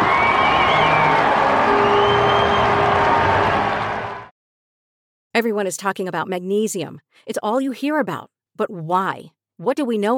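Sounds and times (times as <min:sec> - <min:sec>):
baseball stadium crowd cheering: 0:00.0 - 0:04.3
speech: 0:05.4 - 0:10.1.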